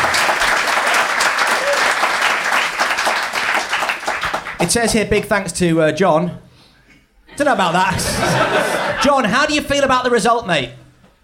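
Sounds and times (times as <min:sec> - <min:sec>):
studio audience applause on a comedy panel show: 0:00.0 - 0:04.8
speech: 0:04.6 - 0:06.4, 0:07.4 - 0:10.8
laughter: 0:07.3 - 0:09.3.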